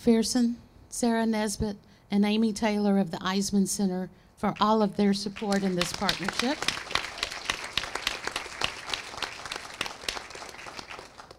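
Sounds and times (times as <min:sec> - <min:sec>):
speech: 0:00.0 - 0:06.8
audience applause: 0:05.4 - 0:11.3.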